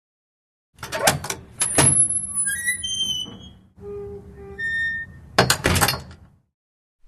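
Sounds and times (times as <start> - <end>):
door: 0.8 - 3.5, 5.4 - 6.2.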